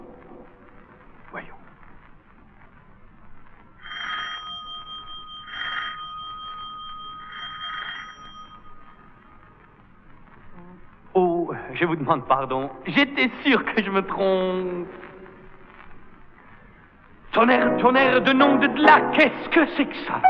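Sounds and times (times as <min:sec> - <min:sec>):
doorbell ringing: 0:03.8 - 0:09.0
speech: 0:11.6 - 0:15.1, 0:17.4 - 0:20.2.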